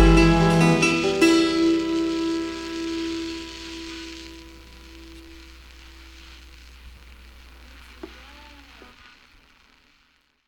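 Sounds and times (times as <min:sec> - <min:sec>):
banjo song: 0:00.0 - 0:02.3.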